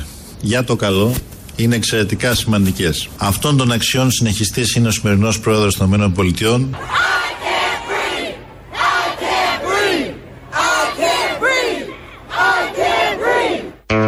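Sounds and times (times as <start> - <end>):
speech: 0.4 - 7.1
protest crowd chanting a slogan: 6.7 - 13.8.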